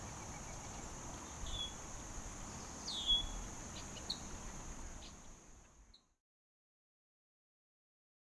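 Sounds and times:
Red-winged blackbird song with harsh buzzy trill: 0:00.0 - 0:06.2.

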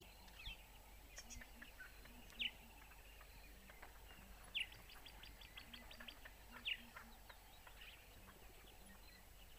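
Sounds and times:
birds singing in a morning chorus: 0:00.0 - 0:09.5.

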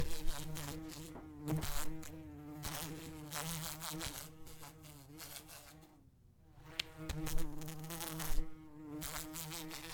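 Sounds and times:
wasp buzzing: 0:00.0 - 0:09.9.

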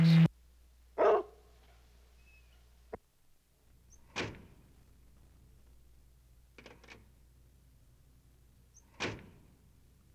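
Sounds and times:
low steady hum: 0:00.0 - 0:00.3
noisy burst: 0:00.0 - 0:00.3
dog barking: 0:01.0 - 0:01.5.

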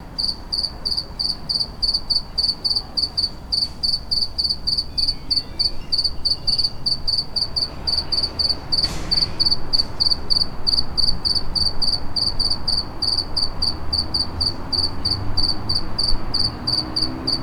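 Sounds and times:
cricket chirping: 0:00.2 - 0:17.4
dull thump: 0:08.4 - 0:10.5.

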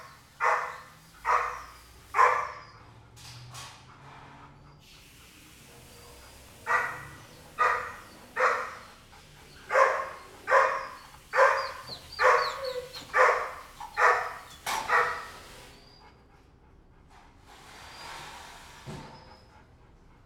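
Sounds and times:
kennel dog barking: 0:00.0 - 0:02.8, 0:06.5 - 0:09.0, 0:09.6 - 0:15.5.

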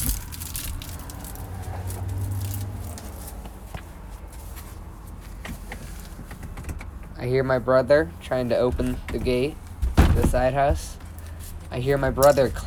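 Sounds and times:
dry leaves rustling underfoot as someone walks: 0:00.0 - 0:03.4
speech: 0:07.2 - 0:09.6, 0:10.2 - 0:11.0, 0:11.7 - 0:12.6.

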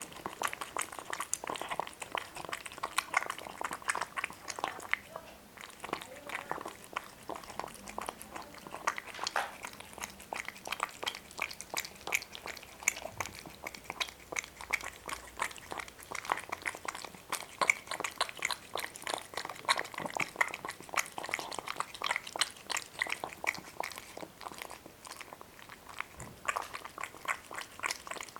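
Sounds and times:
two cats chewing crunchy food: 0:00.0 - 0:28.3.

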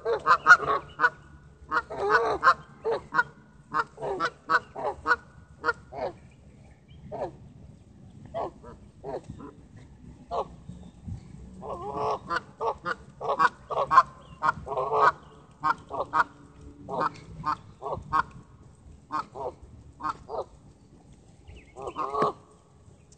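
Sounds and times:
goose honking: 0:00.0 - 0:06.2, 0:11.6 - 0:18.4, 0:19.1 - 0:20.5, 0:21.8 - 0:22.4
rumbling background noise: 0:00.0 - 0:23.1.

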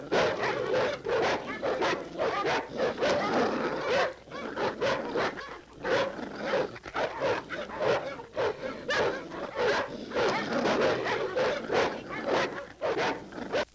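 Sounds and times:
dogs barking: 0:00.0 - 0:13.7.

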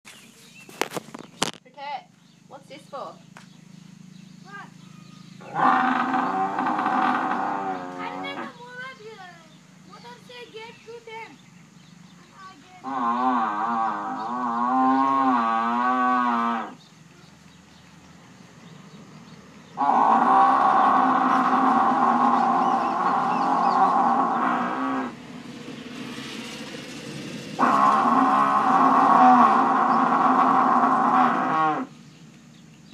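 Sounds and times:
speech: 0:02.7 - 0:03.5, 0:05.5 - 0:06.0
buffalo mooing: 0:05.4 - 0:08.6, 0:12.8 - 0:16.8, 0:19.8 - 0:25.2, 0:27.6 - 0:32.0.

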